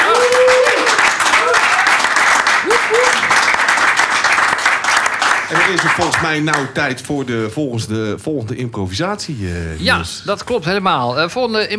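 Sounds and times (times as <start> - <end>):
people whooping: 0.0 - 3.5
audience applause: 0.0 - 6.9
speech: 6.2 - 11.7.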